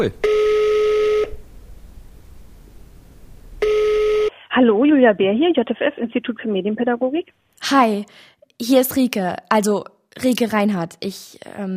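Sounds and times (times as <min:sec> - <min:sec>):
speech: 0:00.0 - 0:00.4, 0:04.6 - 0:11.7
telephone tones on a call line: 0:00.2 - 0:01.4, 0:03.6 - 0:04.3.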